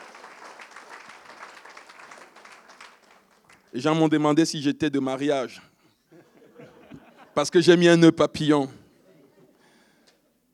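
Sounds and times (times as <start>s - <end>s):
audience applause: 0.0s - 3.7s
speech: 3.7s - 5.7s, 7.4s - 8.8s
laughter: 6.1s - 7.4s.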